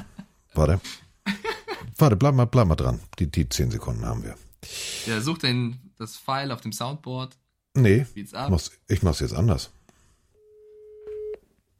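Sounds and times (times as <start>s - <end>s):
speech: 0.6s - 1.0s, 2.0s - 4.4s, 5.0s - 9.8s
telephone call ringing tone: 10.4s - 11.4s.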